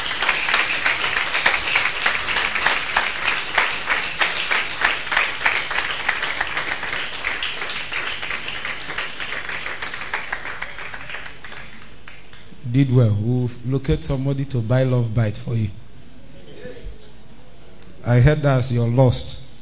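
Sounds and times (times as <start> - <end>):
crowd clapping: 0.0 - 12.6
speech: 12.8 - 15.8, 18.1 - 19.4.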